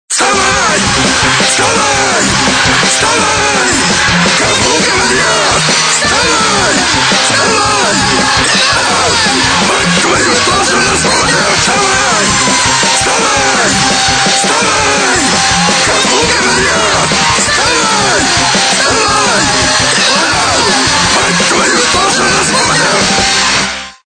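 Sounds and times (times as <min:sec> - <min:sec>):
rock music: 0:00.1 - 0:24.0.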